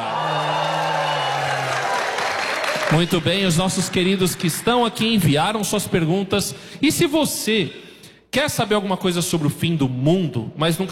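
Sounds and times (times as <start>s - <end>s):
live audience cheering and applauding: 0.0s - 5.1s
speech: 2.9s - 7.8s, 8.4s - 10.8s.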